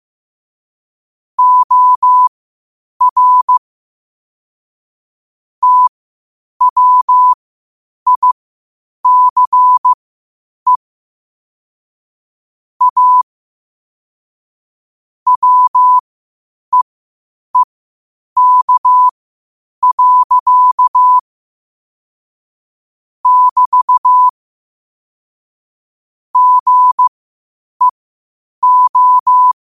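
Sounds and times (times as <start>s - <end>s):
morse code at 5 wpm: 1.4s - 2.3s, 3.0s - 3.6s, 5.6s - 5.9s, 6.6s - 7.4s, 8.1s - 8.4s, 9.1s - 10.0s, 12.8s - 13.2s, 15.3s - 16.0s, 18.4s - 19.1s, 19.8s - 21.2s, 23.2s - 24.3s, 26.4s - 27.1s, 28.6s - 29.6s.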